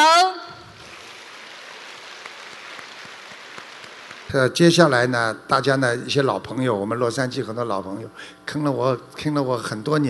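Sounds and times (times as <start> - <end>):
crowd clapping: 0.8 - 4.6
speech: 4.3 - 10.0.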